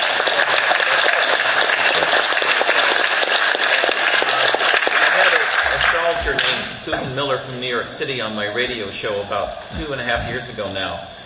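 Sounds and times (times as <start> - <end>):
many hands clapping: 0.0 - 6.8
speech: 6.8 - 11.2.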